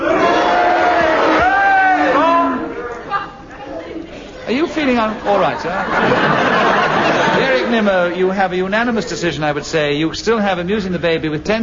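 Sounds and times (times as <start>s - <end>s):
audience cheering: 0.0s - 3.0s, 6.0s - 8.2s
laughter: 4.9s - 8.3s
speech: 4.9s - 11.6s.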